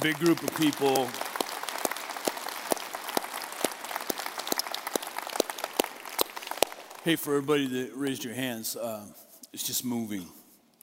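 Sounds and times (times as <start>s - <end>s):
speech: 0.0s - 1.2s, 7.0s - 10.4s
audience applause: 0.0s - 7.1s.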